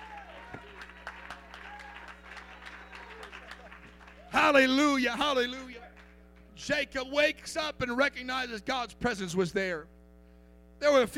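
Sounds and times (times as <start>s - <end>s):
audience clapping hands: 0.0s - 5.0s, 5.6s - 6.5s
speech: 4.5s - 5.7s, 6.6s - 10.0s, 10.8s - 11.1s.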